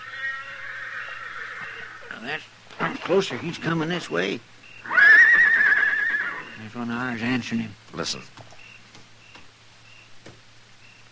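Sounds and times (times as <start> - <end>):
horse whinnying: 0.0 - 2.4, 4.8 - 6.6
hiss: 0.0 - 11.1
speech: 2.2 - 5.0, 6.6 - 8.4.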